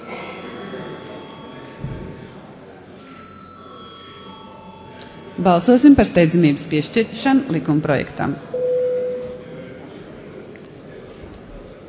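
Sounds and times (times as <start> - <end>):
parliament voting electric bell ringing: 0.0 - 1.8, 3.0 - 5.0
faint low murmur of a room: 0.0 - 11.8
speech: 5.4 - 8.6.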